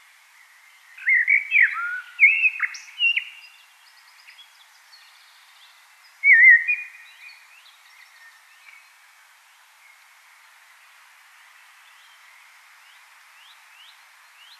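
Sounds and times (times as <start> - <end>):
common blackbird singing: 0.8 - 8.9.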